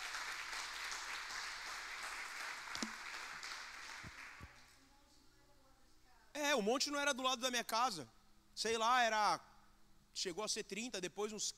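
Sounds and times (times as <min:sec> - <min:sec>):
audience applause: 0:00.0 - 0:04.4
speech: 0:06.6 - 0:09.5, 0:10.2 - 0:11.5.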